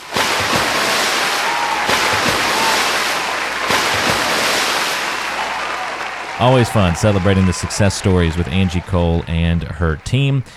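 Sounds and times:
cannonball jumps splashing into a swimming pool: 0.0s - 6.0s
steady churning water in a swimming pool: 0.0s - 10.3s
laughter: 5.2s - 10.4s
speech: 6.4s - 10.5s.

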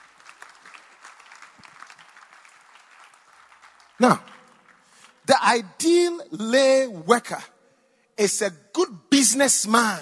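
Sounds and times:
audience clapping: 0.0s - 5.7s
speech: 4.0s - 4.3s, 5.4s - 7.5s, 8.2s - 10.0s.

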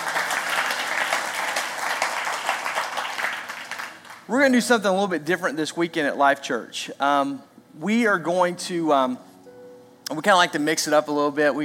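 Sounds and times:
audience hand clapping: 0.0s - 4.3s
speech: 4.3s - 9.3s, 10.1s - 11.6s.

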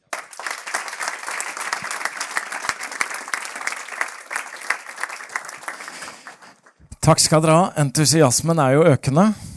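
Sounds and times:
audience applause: 0.0s - 6.8s
speech: 7.1s - 9.4s.

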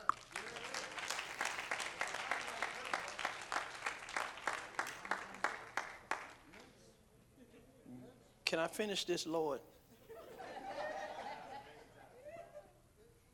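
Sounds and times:
audience clapping: 0.0s - 6.7s
speech: 8.5s - 9.8s
laughter: 9.9s - 13.2s.

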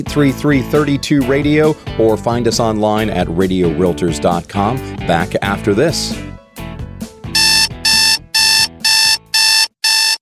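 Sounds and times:
speech: 0.0s - 6.3s
electronic alarm clock beeping: 7.4s - 10.2s.

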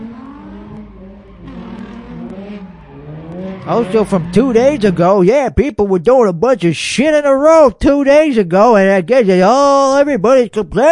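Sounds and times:
car engines revving at a street race: 0.0s - 5.5s
speech: 3.7s - 10.9s.

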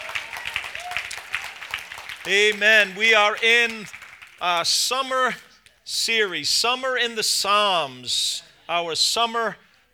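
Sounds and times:
audience clapping: 0.0s - 5.4s
speech: 2.2s - 9.6s.

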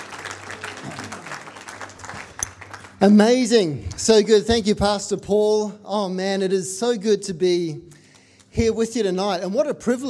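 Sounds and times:
church congregation applause welcoming two guest speakers at a Pentecost service: 0.0s - 3.6s
speech: 3.0s - 7.9s, 8.6s - 10.0s.

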